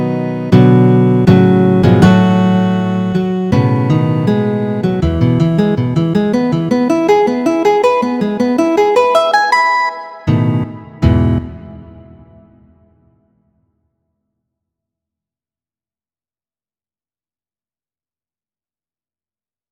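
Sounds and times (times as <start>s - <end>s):
adagio piece: 0.0s - 12.7s.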